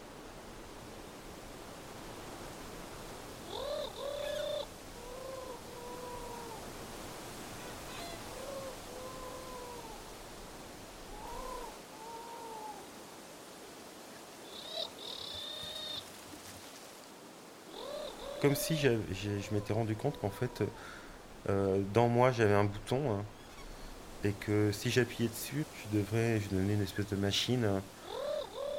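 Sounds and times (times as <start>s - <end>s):
turtle dove cooing: 3.0s - 13.0s, 14.4s - 16.2s, 17.7s - 28.7s
speech: 18.4s - 23.4s, 24.2s - 28.0s.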